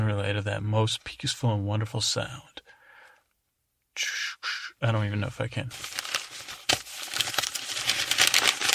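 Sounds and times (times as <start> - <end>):
speech: 0.1 - 2.6, 4.0 - 6.0
leaves rustling as they are thrown around: 5.7 - 8.7.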